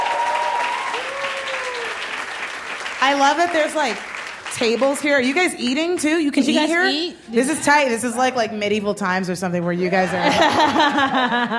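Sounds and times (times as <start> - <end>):
audience applause: 0.0 - 5.6
speech: 3.0 - 11.5
laughter: 9.8 - 11.5.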